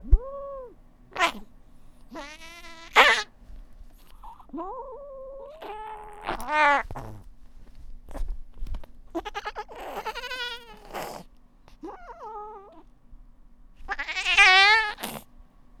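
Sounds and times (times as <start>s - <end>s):
domestic cat yowling and meowing: 0.0s - 1.5s, 2.1s - 3.3s, 4.6s - 7.2s, 9.1s - 11.2s, 11.8s - 12.8s, 13.8s - 15.2s.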